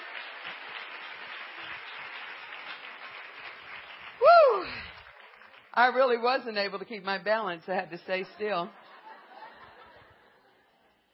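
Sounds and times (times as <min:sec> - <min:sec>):
audience applause: 0:00.0 - 0:05.8
speech: 0:05.8 - 0:08.8
laughter: 0:08.4 - 0:10.9.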